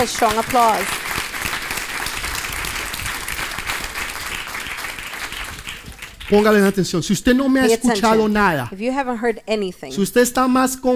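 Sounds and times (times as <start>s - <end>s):
speech: 0.0s - 1.0s, 6.3s - 10.9s
audience applause: 0.0s - 6.8s.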